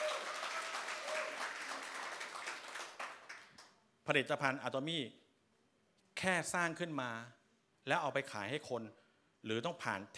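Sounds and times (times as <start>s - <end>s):
crowd applauding: 0.0s - 3.7s
speech: 4.1s - 5.2s, 6.2s - 10.1s.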